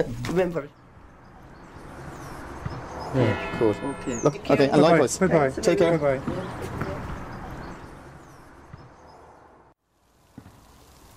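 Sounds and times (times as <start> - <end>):
speech: 0.0 - 0.8, 3.1 - 6.6
rain falling: 9.9 - 11.1.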